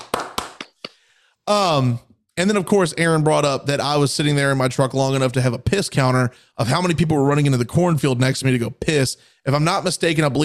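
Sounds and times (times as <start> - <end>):
sharp hand claps: 0.0 - 1.0
speech: 1.5 - 10.4.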